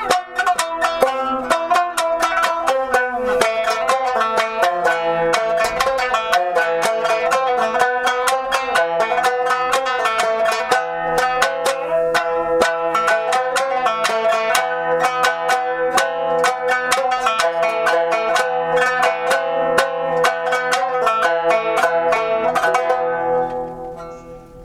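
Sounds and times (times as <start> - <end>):
shamisen: 0.0 - 24.6.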